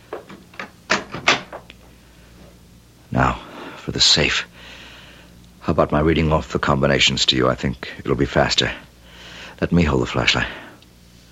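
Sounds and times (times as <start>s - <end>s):
door being closed: 0.2s - 1.7s
speech: 4.0s - 4.8s, 5.6s - 8.8s, 9.6s - 10.6s.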